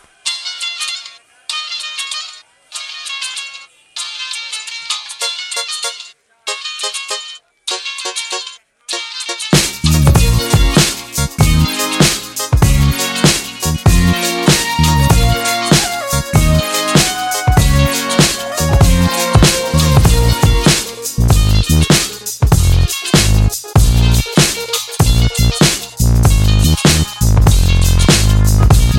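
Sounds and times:
swing music: 1.5s - 28.9s.

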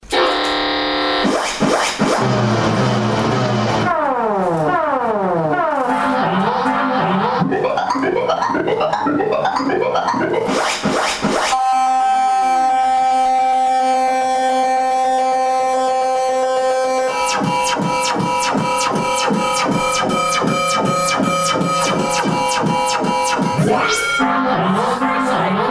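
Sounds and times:
alarm mix: 0.2s - 25.6s.

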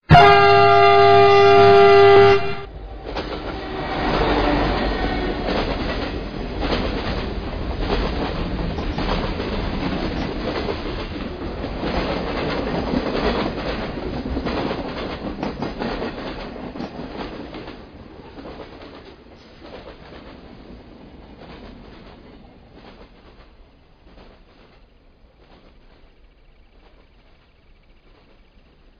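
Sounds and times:
train passing by: 0.0s - 28.9s.

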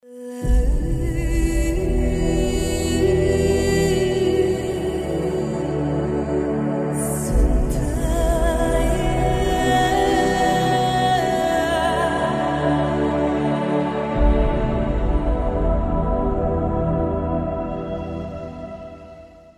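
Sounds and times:
angelic harmony: 0.0s - 19.5s.

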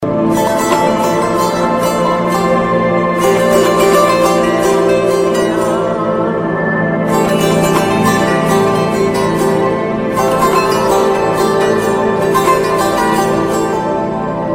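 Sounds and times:
sarangi: 0.0s - 14.5s.

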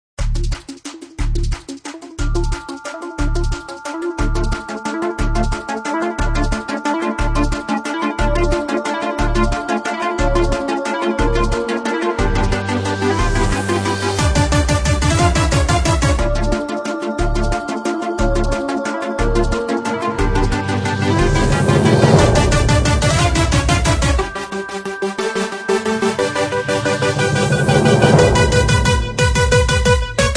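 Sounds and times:
epic electronic remix: 0.3s - 30.3s.

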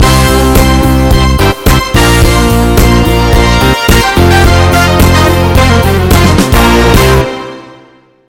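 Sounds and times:
jingle: 0.0s - 8.1s.

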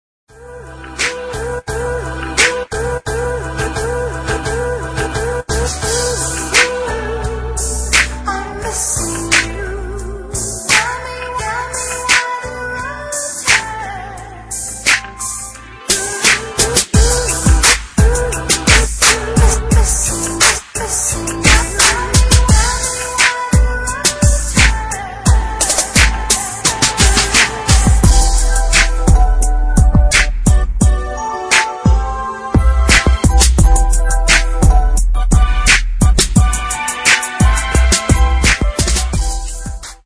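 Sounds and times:
hip hop beat: 0.4s - 40.0s.

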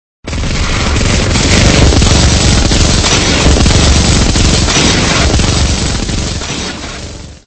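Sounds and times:
machine gun firing: 0.3s - 7.4s.

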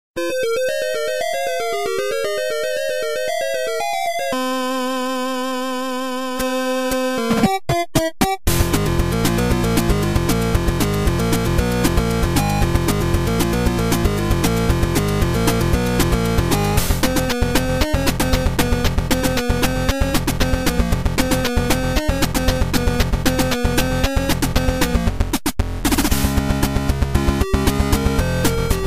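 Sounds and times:
8-bit music: 0.2s - 28.8s.

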